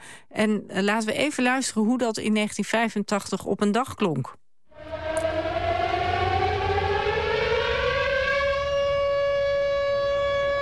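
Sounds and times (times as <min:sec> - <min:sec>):
speech: 0:00.3 - 0:04.4
siren wailing: 0:04.8 - 0:10.6.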